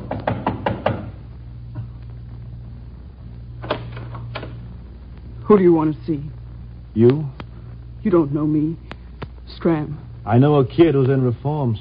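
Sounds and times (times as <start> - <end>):
knocking on a door: 0.0 - 1.2
speech: 5.5 - 7.4, 8.0 - 8.8, 9.5 - 11.7.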